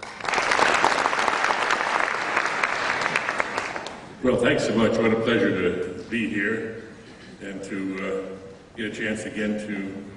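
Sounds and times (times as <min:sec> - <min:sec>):
audience applause welcoming a speaker to a lecture: 0:00.0 - 0:04.1
speech: 0:04.2 - 0:06.8, 0:07.4 - 0:10.1.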